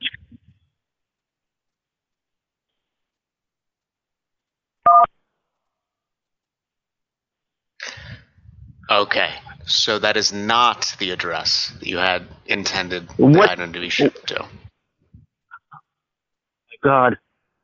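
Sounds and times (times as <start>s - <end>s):
telephone keypad beep during an automated shipping-confirmation prompt: 4.9s - 5.1s
speech: 8.9s - 14.6s, 16.8s - 17.2s.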